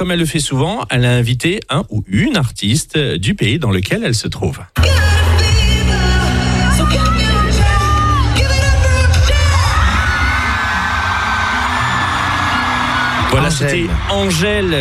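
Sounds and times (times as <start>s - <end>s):
speech: 0.0s - 5.2s, 13.4s - 14.7s
concert crowd cheering wildly: 4.8s - 14.7s.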